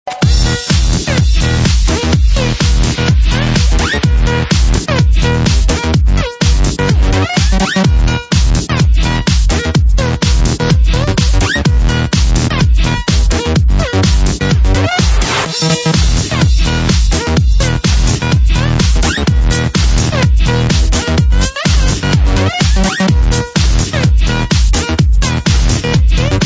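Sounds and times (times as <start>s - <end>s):
electro music: 0.0s - 26.4s.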